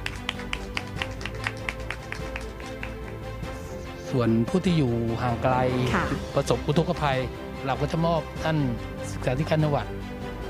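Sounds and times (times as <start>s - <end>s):
audience applause: 0.0s - 3.7s
speech: 4.1s - 10.2s.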